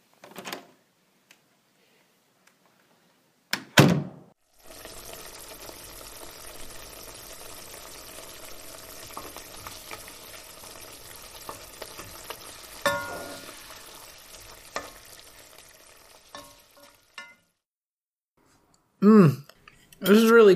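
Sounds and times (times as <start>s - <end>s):
eggs with milk, salt, pepper and butter sizzling in a pan: 4.4s - 17.8s
person speaking: 19.0s - 20.5s.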